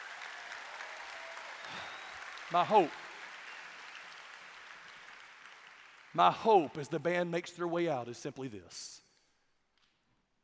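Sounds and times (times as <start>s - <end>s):
audience clapping: 0.0s - 7.3s
speech: 2.5s - 3.0s, 6.2s - 9.0s.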